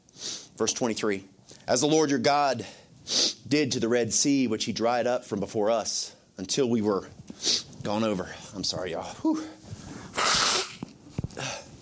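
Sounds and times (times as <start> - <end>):
speech: 0.6 - 9.6
person sniffling: 3.0 - 3.4, 9.2 - 11.7.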